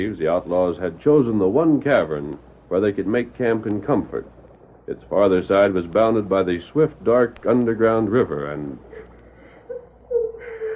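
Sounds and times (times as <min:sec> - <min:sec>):
speech: 0:00.0 - 0:08.9
child crying: 0:09.7 - 0:10.7.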